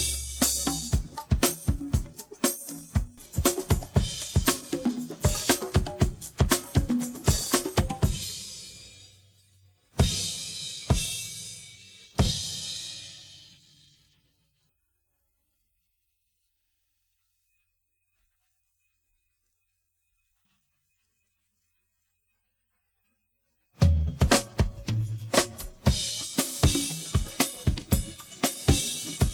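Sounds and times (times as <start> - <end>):
drum: 0.0 - 8.9, 10.0 - 11.6, 12.2 - 13.2, 23.8 - 29.3.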